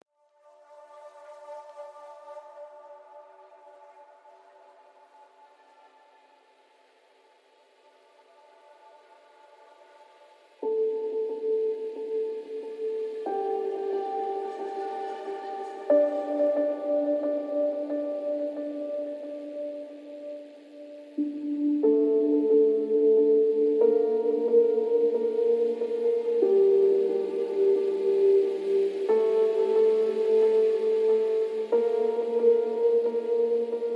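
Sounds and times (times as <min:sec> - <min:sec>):
haunting music mix: 0:00.6 - 0:33.9.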